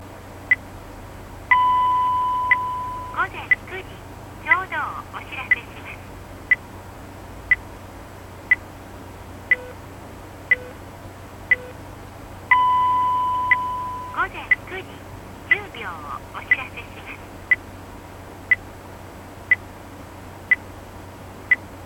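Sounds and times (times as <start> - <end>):
ISDN connection sound: 1.4 - 6.7, 10.4 - 17.8.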